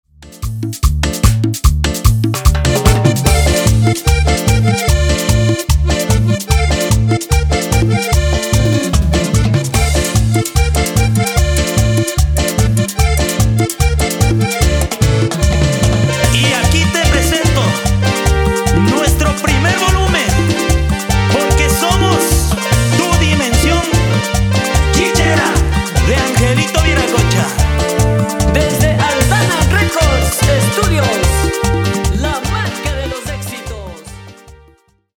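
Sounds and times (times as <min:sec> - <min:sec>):
percussion intro: 0:00.2 - 0:34.7.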